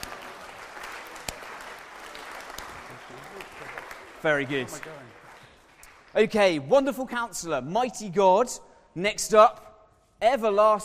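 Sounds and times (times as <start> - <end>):
audience slow clap: 0.0 - 6.4
speech: 4.2 - 5.2, 6.1 - 9.6, 10.2 - 10.8.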